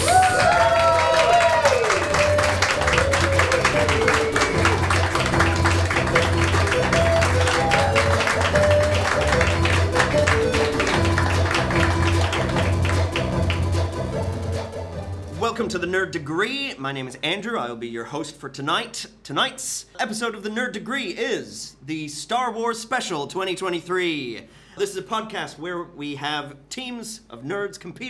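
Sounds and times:
studio audience applause welcoming contestants onto a nerd quiz show: 0.0s - 14.1s
music: 0.0s - 16.6s
speech: 15.9s - 28.0s.

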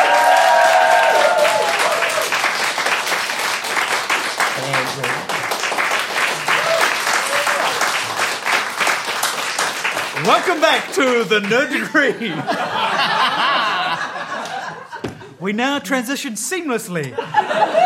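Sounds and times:
audience applause: 0.0s - 12.1s
laughter: 10.2s - 15.4s, 17.1s - 17.8s
speech: 10.4s - 12.8s, 15.4s - 17.8s.

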